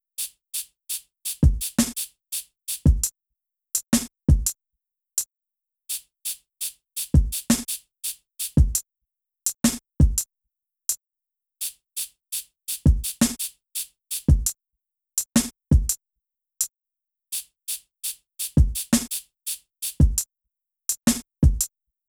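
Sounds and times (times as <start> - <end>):
drums: 0.0 - 3.1, 3.8 - 4.5, 5.9 - 8.8, 9.5 - 10.2, 11.6 - 14.6, 15.2 - 16.0, 17.3 - 20.2, 20.9 - 21.7.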